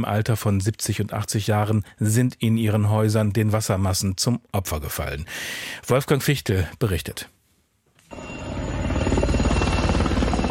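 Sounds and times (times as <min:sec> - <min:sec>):
speech: 0:00.0 - 0:07.4
Black Hawk helicopter flying over St. Pölten: 0:08.1 - 0:10.4.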